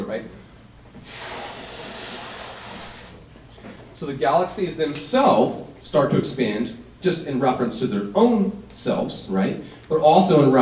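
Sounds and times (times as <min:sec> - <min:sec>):
speech: 0:00.1 - 0:00.4, 0:04.0 - 0:10.6
air blown into a balloon: 0:01.0 - 0:03.3.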